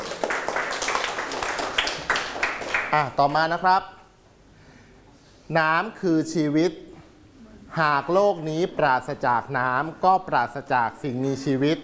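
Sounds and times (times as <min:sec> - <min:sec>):
group of people clapping: 0:00.0 - 0:03.6
speech: 0:02.9 - 0:04.0, 0:05.5 - 0:06.9, 0:07.7 - 0:11.8.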